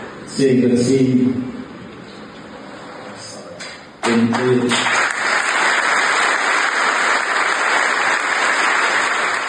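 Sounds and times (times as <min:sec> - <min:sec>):
speech: 0:00.4 - 0:01.5, 0:04.3 - 0:05.0
audience applause: 0:04.0 - 0:09.4.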